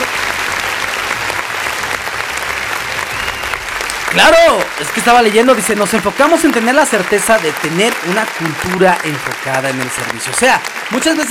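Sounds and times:
sustained crowd applause: 0:00.0 - 0:11.2
speech: 0:04.2 - 0:11.2.

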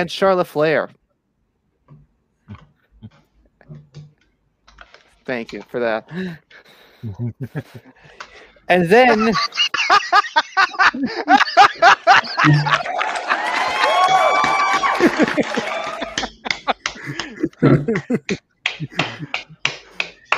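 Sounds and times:
speech: 0:00.0 - 0:01.0, 0:05.3 - 0:13.6, 0:17.6 - 0:19.6
laughter: 0:07.0 - 0:08.3, 0:09.0 - 0:19.6
crowd applause: 0:11.4 - 0:17.5.

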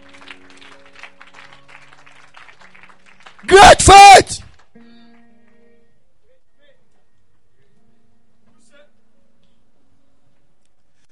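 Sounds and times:
audience clapping: 0:00.0 - 0:05.6
speech: 0:03.4 - 0:04.3.

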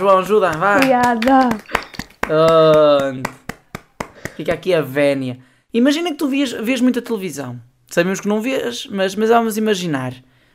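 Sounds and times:
speech: 0:00.0 - 0:01.7, 0:02.3 - 0:03.4, 0:04.4 - 0:10.3
scattered hand claps: 0:00.0 - 0:04.6.

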